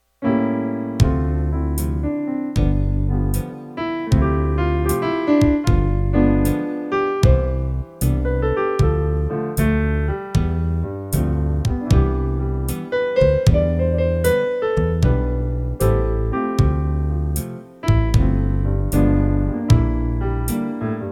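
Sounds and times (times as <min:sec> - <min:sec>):
piano playing: 0:00.1 - 0:21.1.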